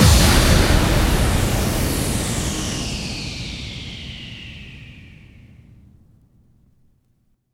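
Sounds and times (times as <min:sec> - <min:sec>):
bass drum FX kicks: 0:00.0 - 0:03.9.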